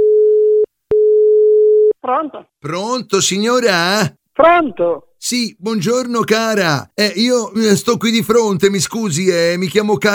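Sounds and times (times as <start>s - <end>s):
telephone line tone as a call is placed: 0.0s - 1.9s
speech: 2.1s - 10.1s.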